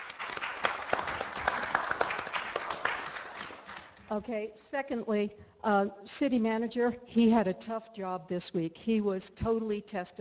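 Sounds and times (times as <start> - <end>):
audience applause: 0.0 - 4.0
speech: 4.1 - 10.1.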